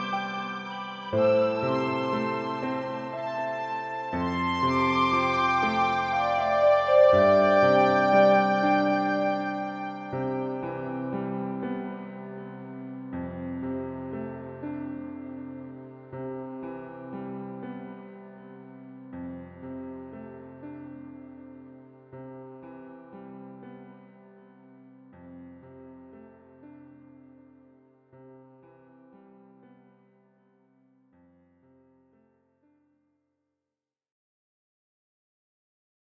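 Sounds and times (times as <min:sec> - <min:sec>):
piano piece: 0:00.0 - 0:27.7.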